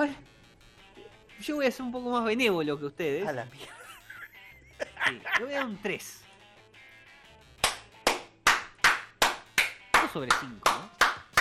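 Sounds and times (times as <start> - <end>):
speech: 0.0 - 0.3, 1.4 - 3.8, 5.1 - 6.2, 10.1 - 11.0
laughter: 3.6 - 5.9
clapping: 7.6 - 11.3.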